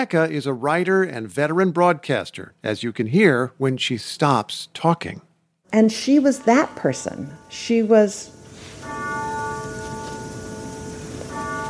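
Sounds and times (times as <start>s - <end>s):
speech: 0.0s - 9.0s
grandfather clock chiming: 5.8s - 11.6s.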